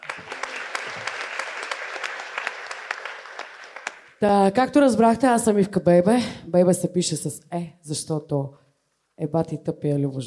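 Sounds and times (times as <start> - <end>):
audience applause at a comedy roast: 0.0 - 4.2
speech: 4.2 - 8.6, 9.2 - 10.2.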